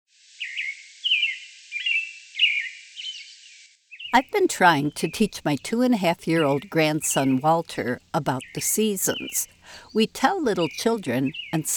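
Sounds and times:
American Robin whistled song: 0.4 - 3.3, 8.4 - 11.7
speech: 4.1 - 11.7.

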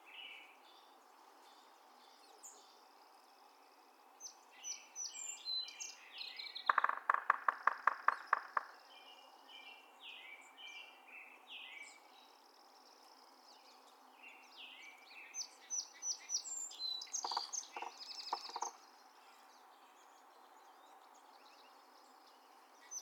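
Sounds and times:
Yellow-bellied Sapsucker drumming: 6.6 - 8.8, 17.2 - 18.8.

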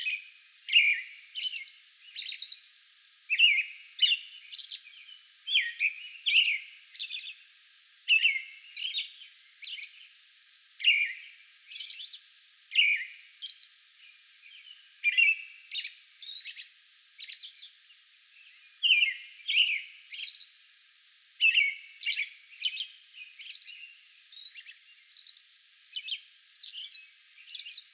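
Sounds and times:
American robin song: 0.0 - 2.7, 3.3 - 7.4, 8.1 - 10.0, 10.8 - 11.2, 11.8 - 13.6, 14.5 - 16.6, 18.8 - 20.4, 21.4 - 23.9.

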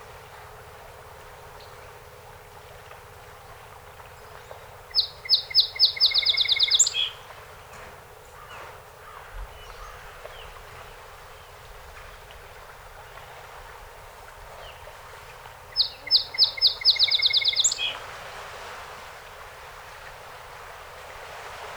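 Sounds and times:
song sparrow singing: 4.4 - 7.3, 15.7 - 18.0.

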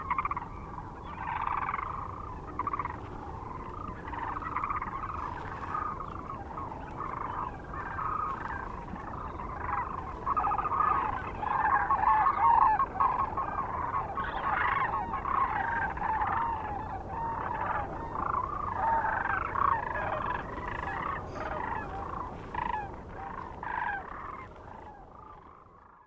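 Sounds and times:
Sandhill Crane flock calling with rattling bugled notes: 0.0 - 26.0.

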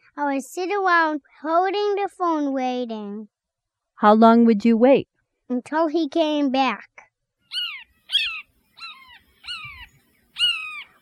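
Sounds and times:
speech: 0.2 - 3.4, 4.0 - 7.0
Blue Jay calling: 7.5 - 10.9.

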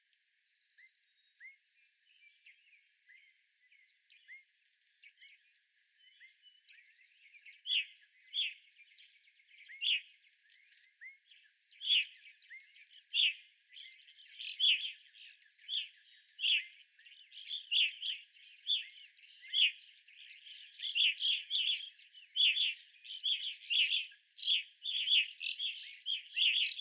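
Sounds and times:
evening grosbeak chirp calls: 11.8 - 26.7.

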